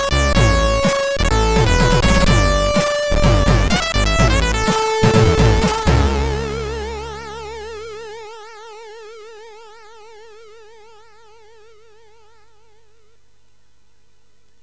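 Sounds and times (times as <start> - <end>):
chiptune game music on a sound chip: 0.0 - 8.9.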